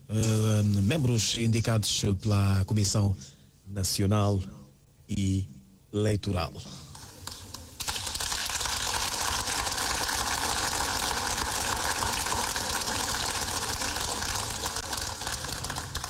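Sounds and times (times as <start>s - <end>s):
speech: 0.1s - 6.8s
applause from parliament deputies: 7.2s - 16.0s.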